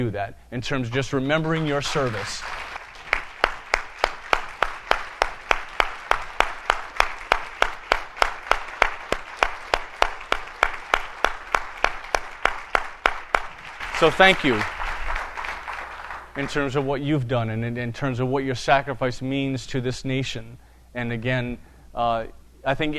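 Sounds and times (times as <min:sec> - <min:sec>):
speech: 0:00.0 - 0:02.6, 0:14.0 - 0:14.8, 0:16.4 - 0:22.9
audience applause for military veterans: 0:01.4 - 0:16.8.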